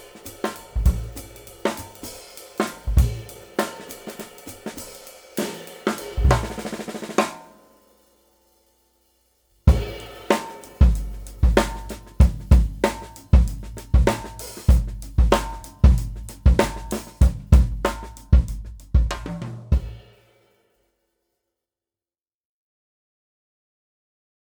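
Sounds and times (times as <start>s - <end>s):
Taye Studio Maple bop drum set: 0.0s - 7.9s, 9.7s - 20.2s.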